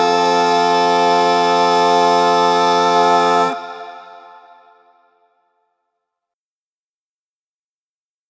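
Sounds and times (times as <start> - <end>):
Christmas carol backing track without lead: 0.0 - 4.5.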